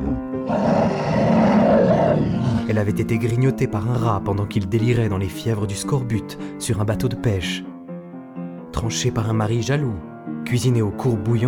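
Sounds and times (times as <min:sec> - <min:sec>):
bear roaring in the Canadian far north: 0:00.0 - 0:02.8
speech: 0:02.7 - 0:07.7, 0:08.8 - 0:11.4.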